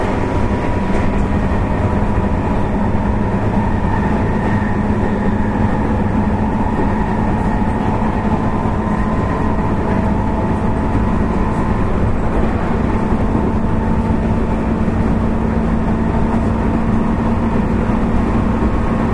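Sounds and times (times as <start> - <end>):
JR West 221 series electric train running on Yamatoji Rapid: 0.0 - 19.1.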